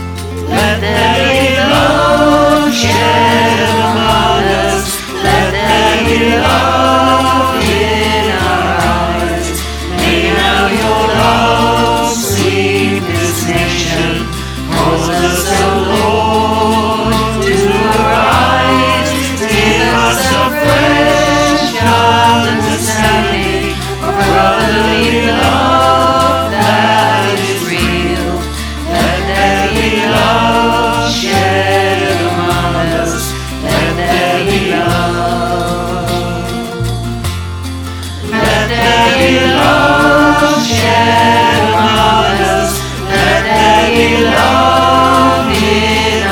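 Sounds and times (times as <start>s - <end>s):
choir singing: 0.2s - 37.3s, 38.2s - 46.3s.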